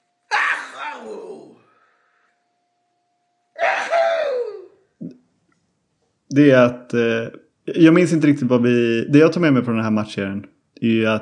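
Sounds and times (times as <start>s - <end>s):
sneezes: 3.6s - 4.6s
speech: 6.3s - 11.2s.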